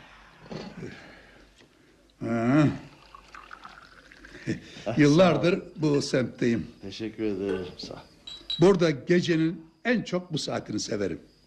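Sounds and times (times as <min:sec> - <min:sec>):
tea pouring into glasses: 0:02.1 - 0:06.1
speech: 0:04.8 - 0:11.3.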